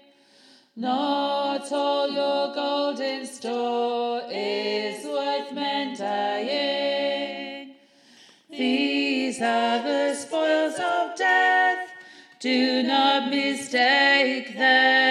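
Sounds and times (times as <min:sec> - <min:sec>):
gospel choir bass singing an octave up: 0:00.8 - 0:15.0.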